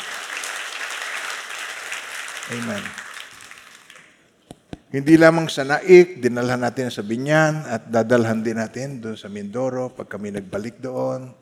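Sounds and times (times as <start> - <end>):
church congregation applauding: 0.0 - 4.2
speech: 2.5 - 3.0, 4.9 - 11.4.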